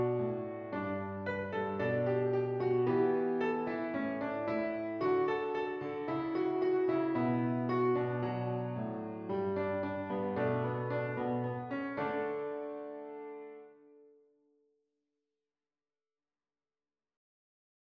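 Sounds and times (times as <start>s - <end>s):
piano piece: 0.0s - 14.1s.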